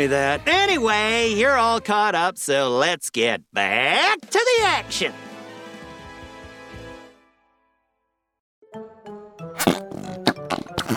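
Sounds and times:
speech: 0.0 - 5.3
fart putty squelching: 9.6 - 10.9.

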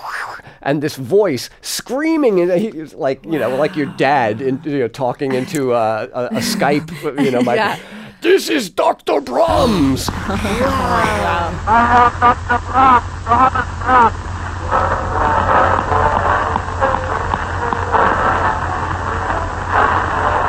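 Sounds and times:
speech: 0.6 - 15.4
speech on old recording: 2.2 - 8.6, 9.2 - 11.7
laughter: 2.3 - 8.4, 9.5 - 14.1
loud hiss: 9.4 - 20.4.

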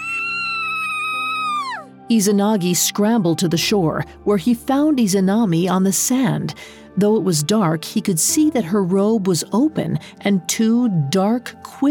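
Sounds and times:
woman's blood-curdling scream: 0.0 - 2.0
speech: 2.1 - 11.8.

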